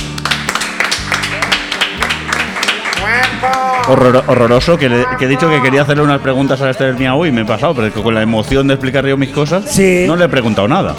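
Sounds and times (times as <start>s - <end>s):
applause: 0.0s - 4.3s
speech: 3.4s - 10.9s.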